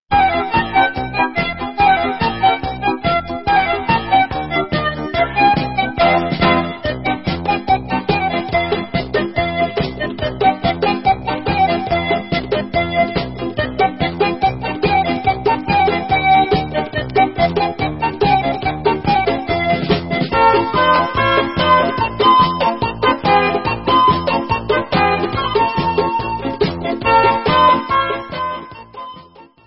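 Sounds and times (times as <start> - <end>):
instrumental music: 0.1 - 29.6.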